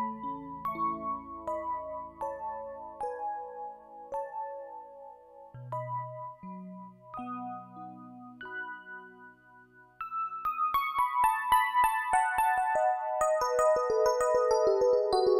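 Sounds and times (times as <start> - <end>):
electric piano: 0.0 - 15.3.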